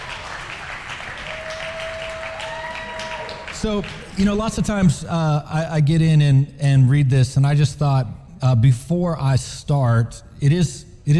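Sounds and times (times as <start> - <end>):
crowd clapping: 0.0 - 4.6
speech: 3.6 - 11.1.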